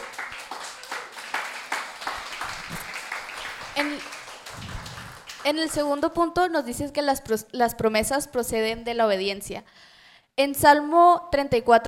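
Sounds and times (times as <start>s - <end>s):
audience applause: 0.0s - 5.8s
speech: 3.8s - 4.2s, 5.4s - 11.8s.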